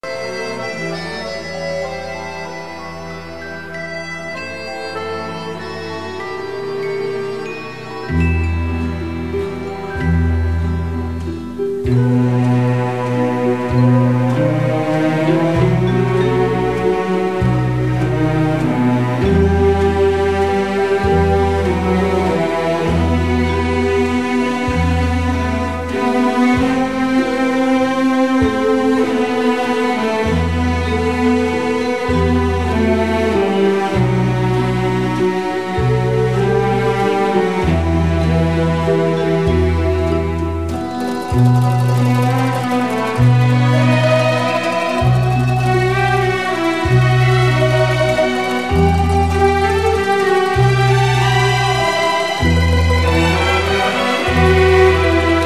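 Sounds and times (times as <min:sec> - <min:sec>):
string orchestra: 0:00.0 - 0:55.4.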